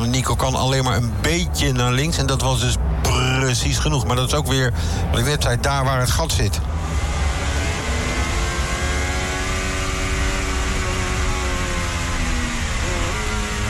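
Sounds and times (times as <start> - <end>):
racing car engine roaring while downshifting: 0.0 - 13.6
speech: 0.2 - 7.0.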